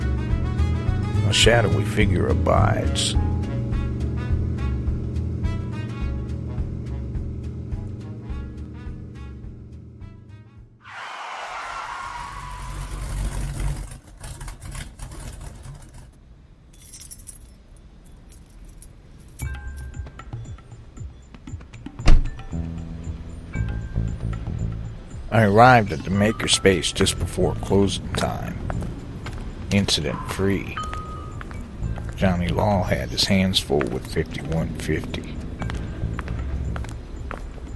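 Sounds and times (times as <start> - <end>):
big Mopar car engine rumbling: 0.0 - 37.7
speech: 1.3 - 3.3, 25.4 - 28.5, 29.7 - 30.8, 32.2 - 35.4
keys or loose metal jangling: 16.7 - 20.2.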